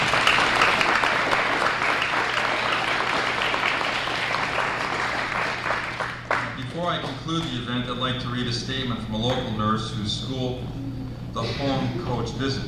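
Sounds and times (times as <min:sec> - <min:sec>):
audience applause: 0:00.0 - 0:06.8
speech: 0:06.8 - 0:10.8, 0:11.4 - 0:12.6.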